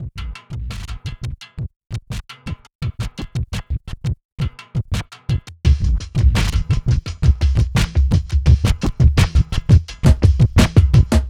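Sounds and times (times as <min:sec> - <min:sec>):
drum: 0:00.0 - 0:01.7, 0:04.4 - 0:11.2.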